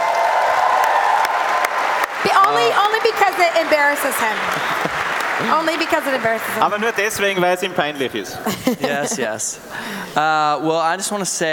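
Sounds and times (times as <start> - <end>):
audience applause: 0.0 - 8.1
laughter: 2.2 - 7.4, 8.2 - 10.1
speech: 2.5 - 11.5.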